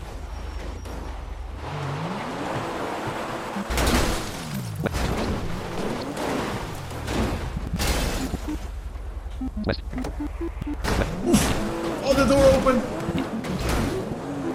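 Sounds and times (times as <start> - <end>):
car engine in a video game: 0.0 - 14.5
speech: 12.3 - 13.0.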